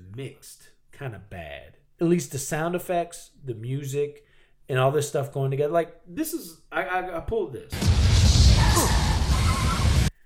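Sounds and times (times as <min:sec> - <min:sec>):
speech: 0:00.2 - 0:09.8
movie explosion on a bridge: 0:07.7 - 0:10.1.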